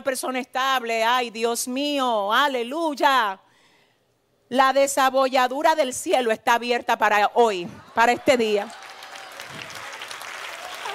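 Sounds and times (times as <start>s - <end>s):
speech: 0.0s - 3.5s, 4.5s - 8.8s
audience applause: 8.6s - 10.9s.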